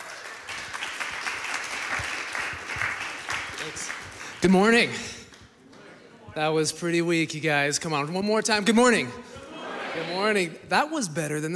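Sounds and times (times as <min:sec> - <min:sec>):
audience applause welcoming a speaker at a church service: 0:00.0 - 0:05.2
speech: 0:03.6 - 0:05.2, 0:06.4 - 0:09.3, 0:10.0 - 0:11.5.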